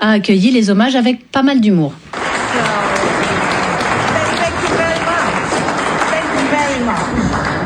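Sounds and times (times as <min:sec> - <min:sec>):
speech: 0:00.0 - 0:02.8
audience applause: 0:02.1 - 0:07.6
murmuring voices: 0:02.4 - 0:07.6.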